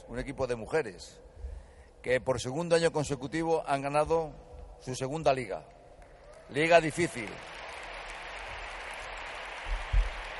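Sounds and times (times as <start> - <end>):
speech: 0.1 - 1.4, 2.0 - 5.8, 6.5 - 7.6
crowd applauding: 6.0 - 10.3.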